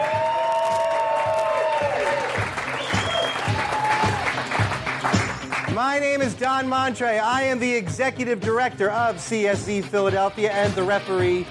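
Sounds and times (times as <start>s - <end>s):
high whoops and shouts: 0.0s - 4.3s
crowd cheering and applauding: 0.0s - 6.5s
speech: 5.8s - 11.4s.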